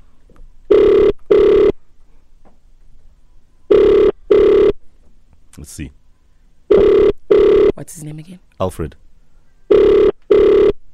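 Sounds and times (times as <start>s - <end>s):
telephone line ringing on an outgoing call: 0.7s - 1.8s, 3.7s - 4.8s, 6.7s - 7.9s, 9.7s - 10.8s
speech: 5.6s - 6.0s, 7.8s - 9.0s.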